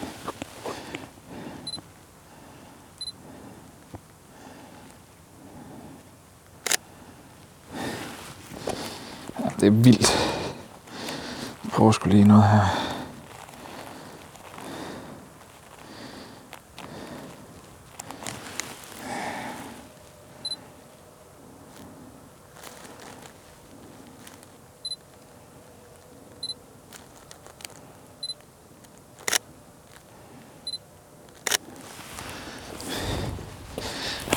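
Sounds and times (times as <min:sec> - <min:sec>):
rustling and shuffling: 0:00.0 - 0:02.1, 0:07.3 - 0:30.6, 0:31.2 - 0:34.3
breathing: 0:00.0 - 0:06.1, 0:06.7 - 0:09.4, 0:10.0 - 0:11.6, 0:12.6 - 0:24.4, 0:30.0 - 0:30.7, 0:31.5 - 0:34.3
camera shutter clicking while taking photos: 0:06.6 - 0:06.8, 0:29.2 - 0:29.4, 0:31.4 - 0:31.7
speech: 0:09.6 - 0:10.3, 0:11.8 - 0:12.9.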